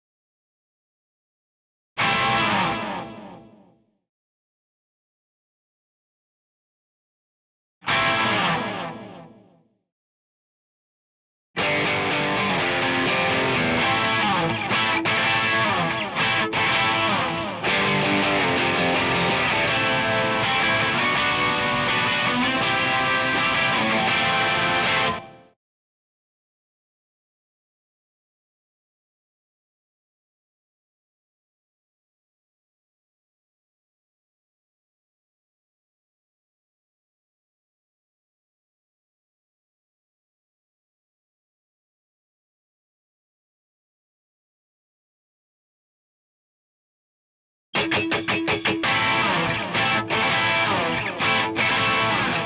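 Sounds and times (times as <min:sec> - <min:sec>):
guitar in C: 0:02.0 - 0:03.8, 0:07.8 - 0:09.6, 0:11.6 - 0:25.6, 0:47.7 - 0:52.4.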